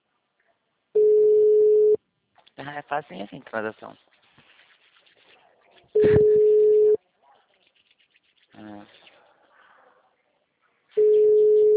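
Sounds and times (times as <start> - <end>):
telephone busy tone from a dialled number: 1.0 - 2.0, 6.0 - 7.0, 11.0 - 11.7
speech: 2.6 - 4.2.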